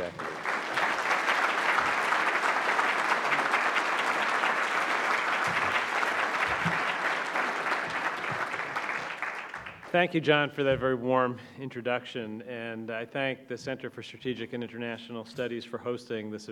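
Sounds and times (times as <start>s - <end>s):
audience applause welcoming a speaker: 0.0s - 10.0s
speech: 10.0s - 16.5s.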